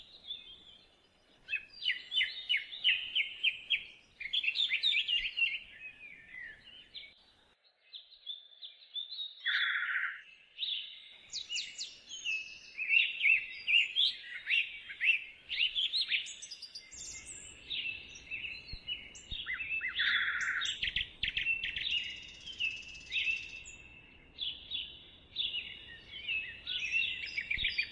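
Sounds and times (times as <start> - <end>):
several birds singing: 0.0 - 27.9.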